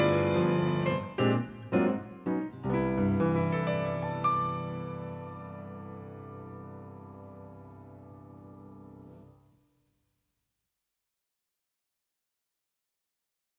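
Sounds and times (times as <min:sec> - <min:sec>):
guitar: 0:00.0 - 0:09.4
piano: 0:00.0 - 0:09.5.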